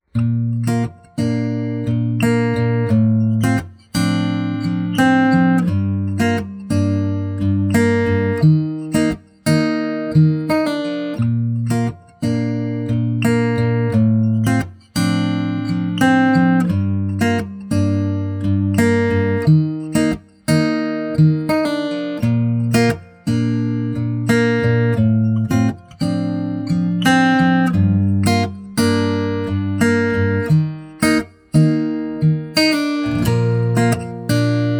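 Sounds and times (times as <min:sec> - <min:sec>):
acoustic guitar karaoke backing: 0:00.0 - 0:34.7.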